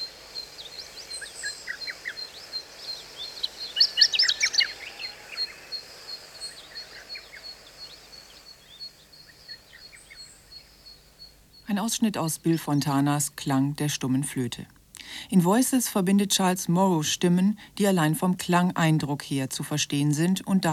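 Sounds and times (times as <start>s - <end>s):
larks twittering: 0.0s - 11.7s
speech: 11.7s - 20.7s.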